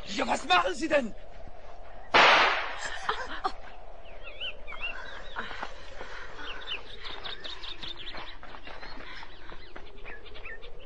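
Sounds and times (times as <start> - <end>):
thin high bird chirps: 0.0 - 10.8
speech: 0.1 - 1.2
pistol gunshot: 2.1 - 2.8
laughter: 2.8 - 3.7.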